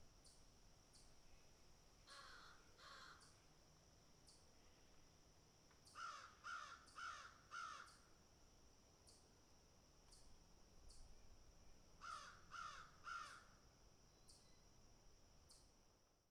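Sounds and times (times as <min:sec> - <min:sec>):
crows cawing harshly: 0:02.1 - 0:03.3, 0:06.0 - 0:08.0, 0:12.0 - 0:13.5.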